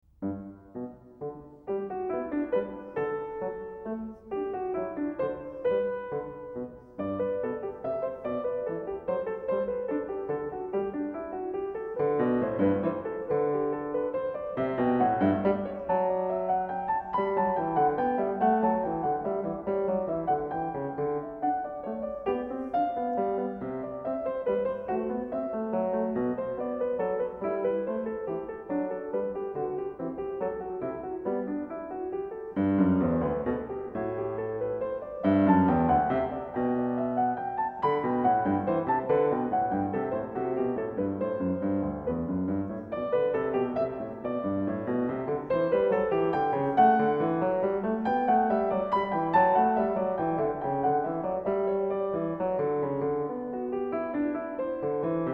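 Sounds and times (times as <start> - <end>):
duet in G major: 0.2 - 55.3.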